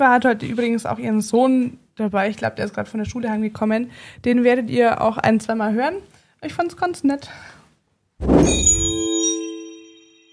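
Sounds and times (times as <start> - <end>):
speech: 0.0 - 7.6
doorbell ding: 8.4 - 10.3.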